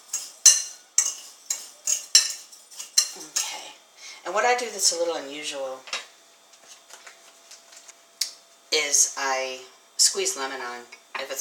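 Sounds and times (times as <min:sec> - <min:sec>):
stirring a breadcrumb mixture in a bowl: 0:00.0 - 0:03.6
speech: 0:04.2 - 0:06.0, 0:08.9 - 0:11.3.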